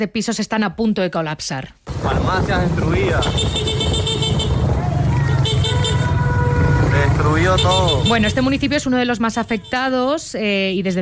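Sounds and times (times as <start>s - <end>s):
speech: 0.0s - 3.8s, 7.2s - 11.0s
street traffic heard from inside a moving car: 1.8s - 11.0s
voices murmuring: 2.0s - 11.0s
car horns: 2.8s - 11.0s.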